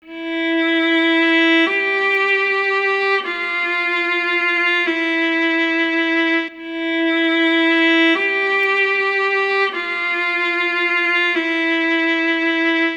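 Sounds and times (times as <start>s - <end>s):
strings: 0.0s - 12.9s.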